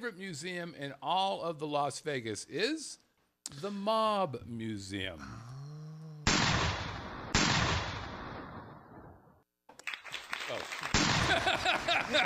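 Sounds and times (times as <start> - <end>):
speech: 0.0 - 5.6, 10.5 - 12.2
gunshots: 6.2 - 9.1, 10.9 - 11.5
rapid crackling shots and clatter: 6.3 - 8.6, 10.9 - 11.5
laughter: 11.2 - 12.2.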